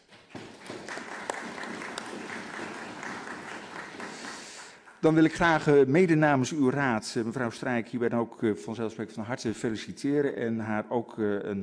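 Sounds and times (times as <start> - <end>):
applause from council meeting members: 0.0 - 5.7
speech: 5.0 - 11.6.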